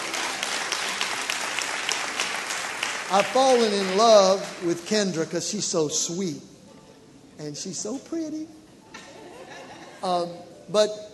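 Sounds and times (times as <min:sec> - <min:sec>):
audience hand clapping at a church gathering: 0:00.0 - 0:05.2
speech: 0:03.1 - 0:06.5, 0:07.4 - 0:09.0, 0:10.0 - 0:11.0
laughter: 0:08.9 - 0:10.4.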